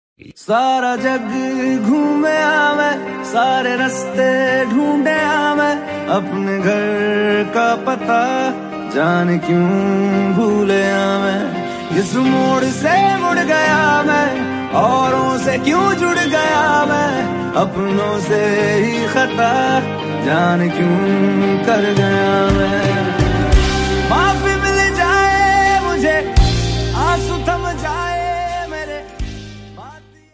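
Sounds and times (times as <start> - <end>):
sad song ringtone: 0.5 - 30.3.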